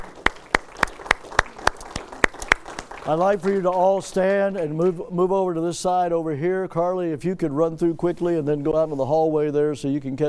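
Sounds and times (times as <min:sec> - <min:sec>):
big round of applause: 0:00.0 - 0:05.0
speech: 0:03.1 - 0:10.2.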